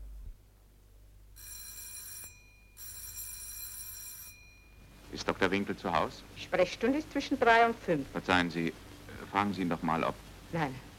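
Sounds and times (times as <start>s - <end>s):
doorbell ringing: 1.4s - 5.0s
speech: 5.2s - 10.9s.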